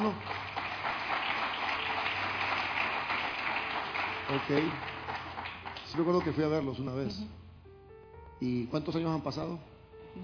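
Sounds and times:
speech: 0.0s - 0.4s, 4.3s - 4.9s, 5.9s - 7.4s, 8.4s - 10.2s
crowd applauding: 0.0s - 6.9s.

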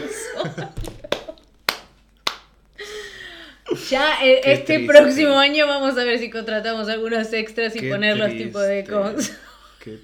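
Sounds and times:
speech: 0.4s - 0.9s, 3.8s - 10.0s
hosts clapping: 0.8s - 2.5s.

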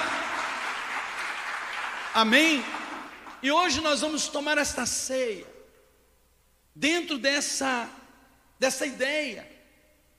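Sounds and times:
crowd applause: 0.0s - 3.4s
speech: 2.2s - 2.8s, 3.4s - 5.5s, 6.8s - 8.0s, 8.6s - 9.5s.

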